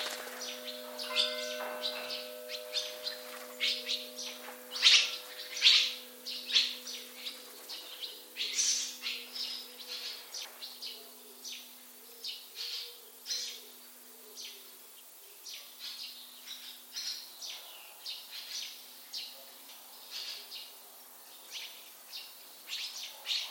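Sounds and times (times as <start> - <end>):
bird calling with short high chirping notes: 0.0 - 23.4.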